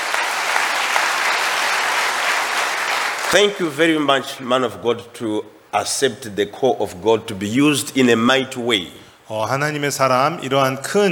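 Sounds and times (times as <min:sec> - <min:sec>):
audience clapping: 0:00.0 - 0:04.0
speech: 0:03.3 - 0:11.1.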